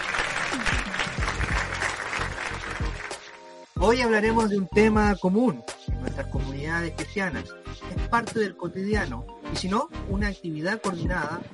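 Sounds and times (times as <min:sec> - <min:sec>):
applause: 0:00.0 - 0:03.6
speech: 0:03.8 - 0:05.7, 0:06.8 - 0:11.5.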